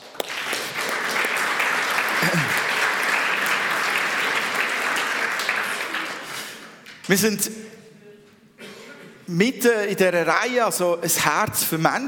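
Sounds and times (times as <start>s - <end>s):
audience clapping: 0.0s - 7.1s
speech: 7.1s - 7.8s, 9.3s - 12.0s.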